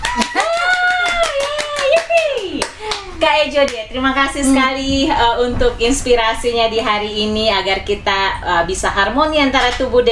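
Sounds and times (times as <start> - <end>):
hand clapping: 0.0 - 3.8
speech: 3.6 - 10.1.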